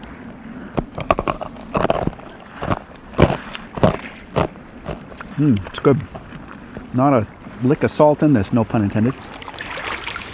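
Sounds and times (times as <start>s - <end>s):
person biting into a piece of iceberg ice: 1.0s - 5.3s
speech: 5.4s - 6.2s, 6.9s - 9.3s.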